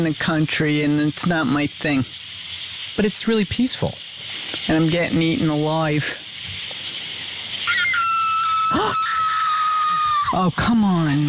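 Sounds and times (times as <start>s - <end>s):
speech: 0.0s - 2.3s, 3.0s - 4.1s, 4.7s - 6.2s, 10.3s - 11.2s
insects hissing: 0.0s - 11.2s
coyote or fox calling at night: 7.5s - 11.2s.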